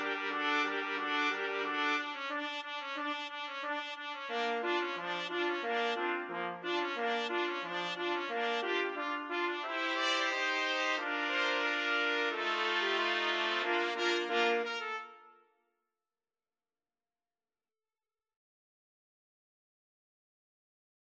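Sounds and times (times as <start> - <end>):
trumpet quartet playing a march: 0.0 - 15.3.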